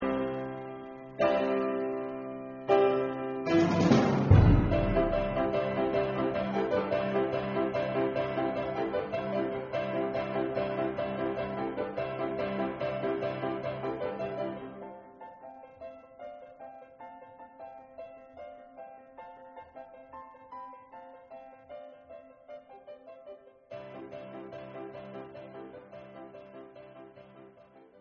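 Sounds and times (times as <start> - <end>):
solo piano dance: 0.0 - 27.9.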